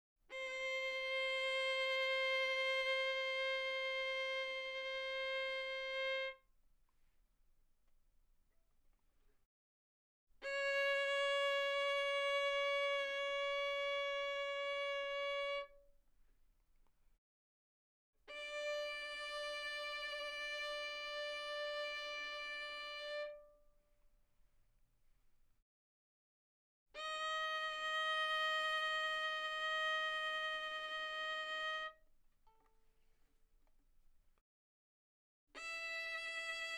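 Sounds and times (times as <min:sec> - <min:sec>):
violin bowed mezzo forte on the A string: 0:00.3 - 0:06.5, 0:10.4 - 0:15.9, 0:18.3 - 0:23.8, 0:27.0 - 0:33.1, 0:35.6 - 0:36.7.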